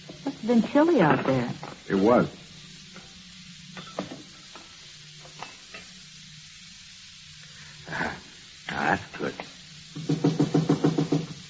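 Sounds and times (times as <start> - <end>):
speech: 0.4 - 2.4
knocking at the back door: 10.0 - 11.4.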